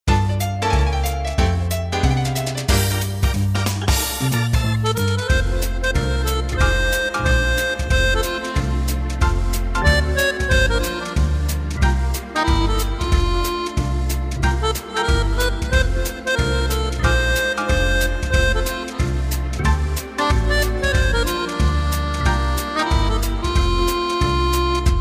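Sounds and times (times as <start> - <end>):
piano: 0.1 - 24.9.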